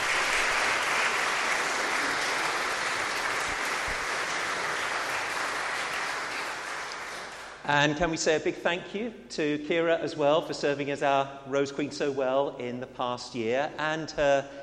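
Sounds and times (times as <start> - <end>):
audience applause: 0.0 - 7.6
speech: 7.7 - 14.6.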